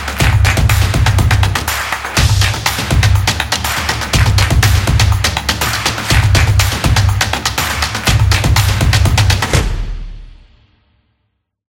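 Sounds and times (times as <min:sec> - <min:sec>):
clapping beat: 0:00.0 - 0:10.4.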